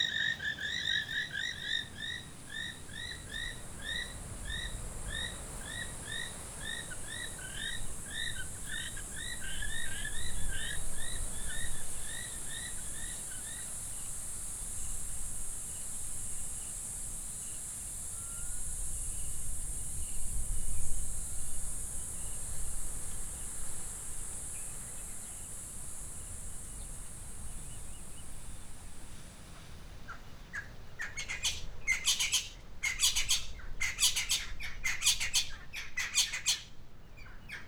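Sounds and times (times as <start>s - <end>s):
rapid chirping calls at Mmabolela Reserve in Limpopo, South Africa: 0.0s - 13.1s, 30.1s - 37.6s
high insect whine at Mmabolela Reserve in Limpopo, South Africa: 0.0s - 29.3s.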